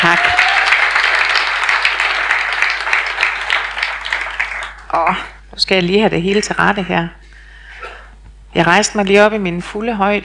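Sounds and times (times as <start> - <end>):
crowd applause welcoming a speaker at a faith gathering: 0.0 - 5.0
speech: 5.1 - 7.2, 8.5 - 10.2.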